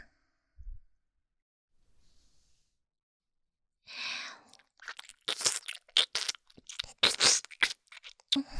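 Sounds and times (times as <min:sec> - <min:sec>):
ASMR ear licking sounds: 0:04.5 - 0:08.4.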